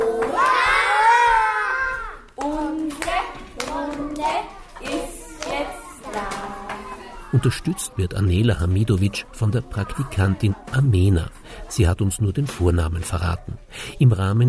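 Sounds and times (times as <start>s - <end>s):
children and teacher clapping loudly: 0.0s - 7.0s
children calling and singing: 0.0s - 13.9s
speech: 7.3s - 14.4s.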